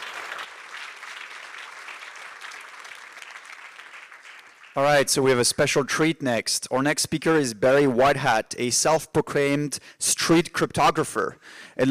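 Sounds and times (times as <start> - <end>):
audience applause: 0.0 - 5.1
speech: 4.8 - 11.8.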